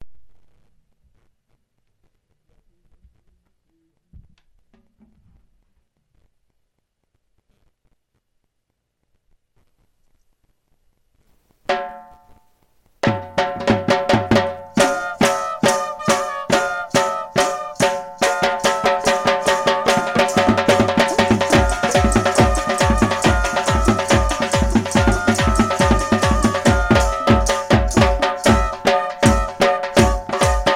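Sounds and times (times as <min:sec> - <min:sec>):
Punjabi folk beat instrumental: 0:11.7 - 0:12.4, 0:13.0 - 0:30.7.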